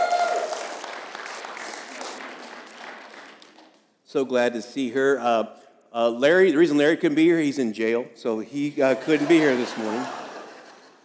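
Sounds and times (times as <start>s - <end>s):
morning audience applauding to welcome a visiting pastor's wife: 0.0s - 3.8s
speech: 4.1s - 10.2s
laughter: 8.8s - 11.0s.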